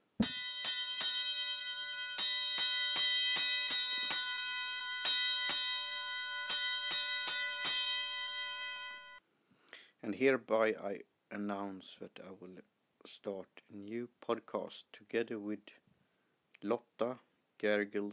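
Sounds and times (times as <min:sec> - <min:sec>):
fire alarm bell ringing: 0:00.2 - 0:09.2
speech: 0:10.0 - 0:15.8, 0:16.6 - 0:18.1.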